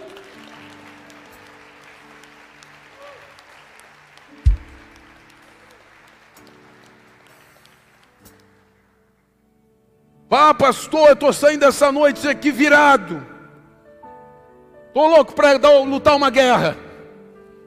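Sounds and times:
crowd applauding: 0.0 - 9.0
sharp low thump: 4.5 - 4.8
speech: 10.3 - 13.3, 15.0 - 16.8.

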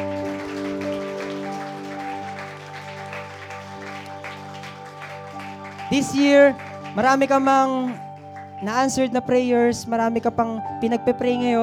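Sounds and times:
church congregation applause: 0.0 - 9.2
speech: 5.9 - 11.6.

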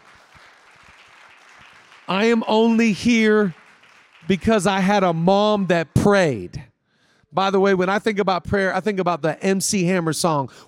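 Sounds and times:
audience clapping and cheering: 0.0 - 5.7
speech: 2.1 - 3.6, 4.3 - 6.6, 7.3 - 10.6.

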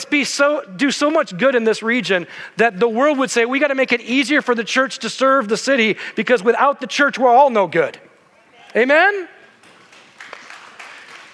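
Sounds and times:
speech: 0.1 - 8.1, 8.7 - 9.4
audience's quiet golf clap: 9.5 - 11.3.

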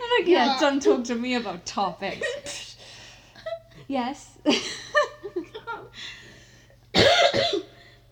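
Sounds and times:
speech: 0.1 - 2.5, 3.9 - 4.7
coughing: 6.9 - 7.9.

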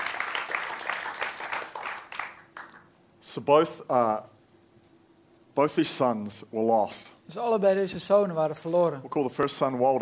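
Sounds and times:
audience applause: 0.0 - 2.8
speech: 3.4 - 4.3, 5.6 - 9.9.

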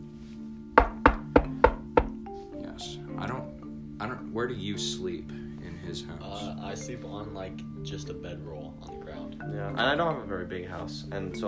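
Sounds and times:
knock at the front door: 0.8 - 2.2
speech: 4.0 - 11.4.

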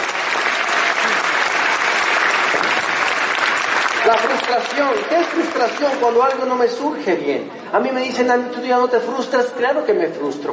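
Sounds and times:
audience applause: 0.0 - 6.6
speech: 4.1 - 10.5.

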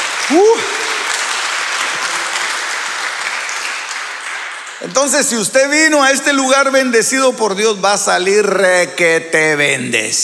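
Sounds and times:
audience applauding: 0.0 - 6.3
speech: 0.3 - 0.8, 4.9 - 10.2.

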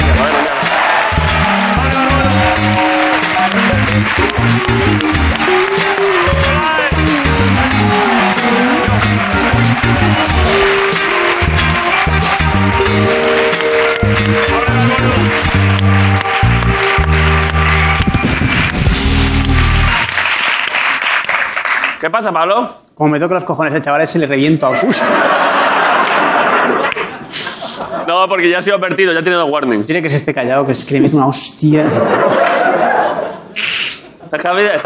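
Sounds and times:
audience applause: 0.0 - 22.0
speech: 22.1 - 25.6, 28.1 - 32.5, 34.3 - 34.8
laughter: 24.6 - 28.2, 31.8 - 34.4.

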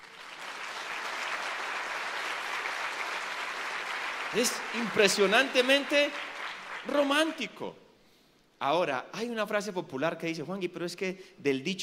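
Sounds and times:
audience applause: 0.0 - 7.4
speech: 4.3 - 7.8, 8.6 - 11.8.

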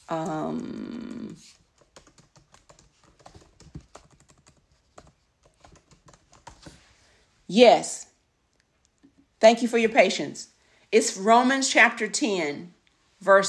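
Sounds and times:
speech: 0.1 - 1.6, 7.5 - 8.1, 9.4 - 13.4
typing keywords on a computer keyboard: 0.1 - 6.8.

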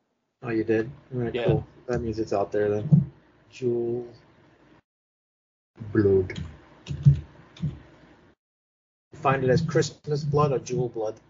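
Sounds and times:
speech: 0.4 - 4.2, 5.8 - 6.5, 9.2 - 11.2
computer keyboard keystrokes typing a film title: 6.3 - 7.8.

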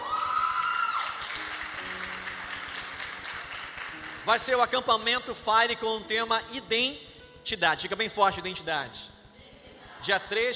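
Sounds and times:
audience applause: 0.0 - 4.6
speech: 4.3 - 9.1, 10.0 - 10.5.

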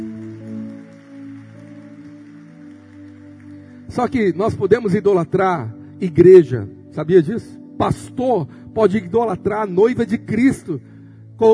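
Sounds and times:
audience applauding: 0.0 - 4.1
speech: 3.9 - 11.5.

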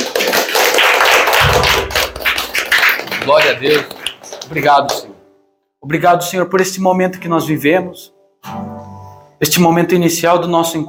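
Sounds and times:
audience applause: 0.0 - 5.1
speech: 3.3 - 5.1, 5.8 - 8.7, 9.4 - 10.8.

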